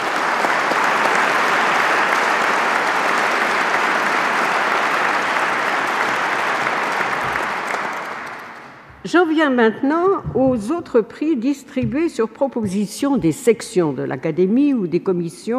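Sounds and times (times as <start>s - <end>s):
audience applause: 0.0s - 9.0s
speech: 9.0s - 15.5s.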